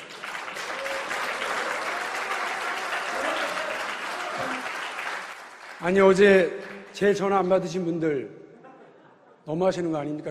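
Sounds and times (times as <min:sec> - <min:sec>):
audience applause at a party convention: 0:00.0 - 0:07.0
speech: 0:05.8 - 0:08.4, 0:09.5 - 0:10.2.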